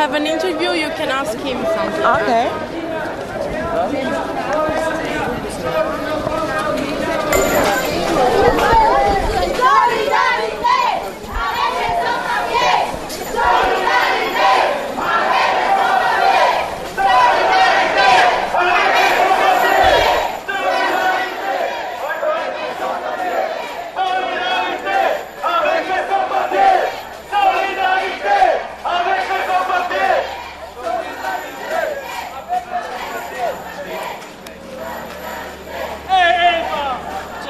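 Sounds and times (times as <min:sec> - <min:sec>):
speech: 0:00.0 - 0:08.8
people shouting: 0:07.4 - 0:37.4
large street demonstration crowd chanting rhythmically: 0:09.6 - 0:36.1.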